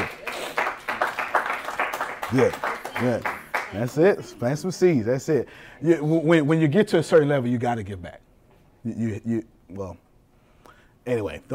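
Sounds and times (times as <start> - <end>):
audience rhythmic clapping: 0.0 - 4.1
speech: 2.3 - 8.2, 8.8 - 10.0, 11.1 - 11.5.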